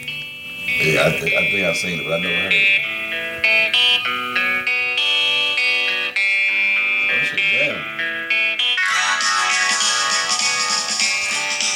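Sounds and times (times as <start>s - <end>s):
distorted electric guitar chords: 0.0s - 11.7s
rock song playing on music app: 0.0s - 11.7s
speech: 0.8s - 3.0s.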